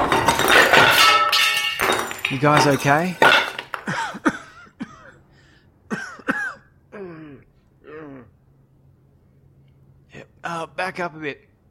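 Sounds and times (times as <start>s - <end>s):
part of wall or roof collapsing: 0.0s - 4.0s
speech: 2.3s - 3.3s, 3.9s - 4.3s, 10.6s - 11.5s.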